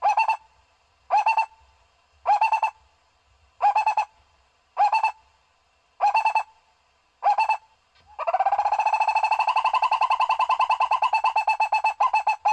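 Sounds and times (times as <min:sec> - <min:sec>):
owl hooting: 0:00.0 - 0:00.5, 0:01.1 - 0:02.9, 0:03.6 - 0:04.2, 0:04.8 - 0:05.3, 0:06.0 - 0:06.6, 0:07.2 - 0:12.5.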